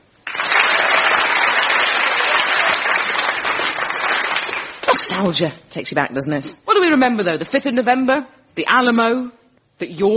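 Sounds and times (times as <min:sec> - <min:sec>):
audience applause: 0:00.2 - 0:04.9
speech: 0:05.1 - 0:10.1.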